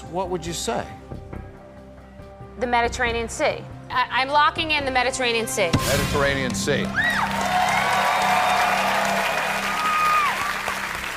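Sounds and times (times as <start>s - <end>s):
speech: 0.1s - 1.2s, 2.6s - 7.4s
audience applause: 6.8s - 11.1s
audience cheering: 6.8s - 11.1s.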